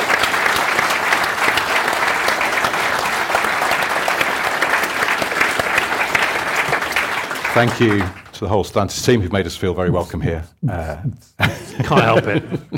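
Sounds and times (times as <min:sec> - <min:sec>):
audience round of applause: 0:00.0 - 0:08.6
speech: 0:07.6 - 0:12.7
laughter: 0:11.4 - 0:12.7.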